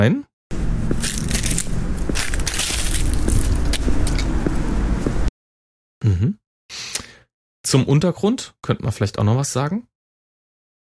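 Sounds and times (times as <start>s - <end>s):
speech: 0.0s - 0.3s, 6.0s - 6.4s, 7.6s - 9.9s
footsteps through autumn leaves on an asphalt road: 0.8s - 4.6s.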